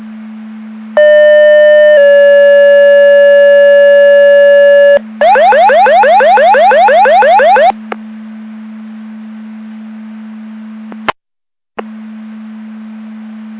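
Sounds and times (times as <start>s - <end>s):
siren: 1.0s - 7.8s.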